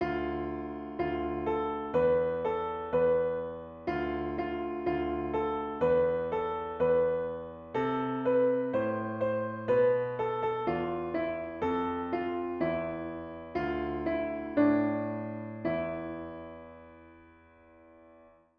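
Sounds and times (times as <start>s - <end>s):
piano: 0.0s - 18.5s.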